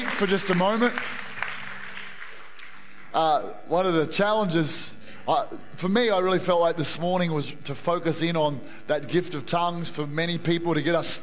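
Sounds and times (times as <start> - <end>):
audience clapping: 0.0 - 3.4
speech: 0.2 - 1.2, 3.1 - 11.2.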